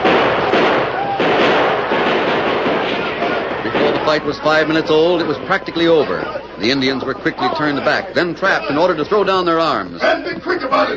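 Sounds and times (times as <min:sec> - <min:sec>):
gunfire from the train: 0:00.0 - 0:05.1
speech: 0:04.1 - 0:10.9.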